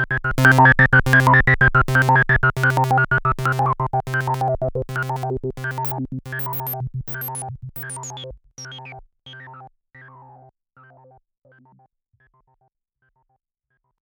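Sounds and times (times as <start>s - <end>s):
synthesizer bubbling tones, dry signal: 0.0s - 9.6s.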